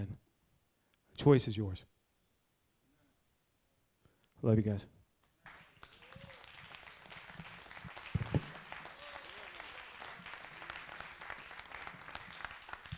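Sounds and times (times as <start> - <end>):
speech: 1.2 - 1.9, 4.4 - 5.0
audience applause: 5.4 - 12.9.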